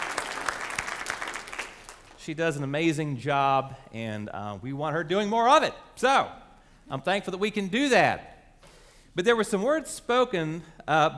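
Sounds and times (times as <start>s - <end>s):
audience clapping: 0.0s - 2.2s
speech: 2.3s - 8.3s, 9.2s - 11.1s.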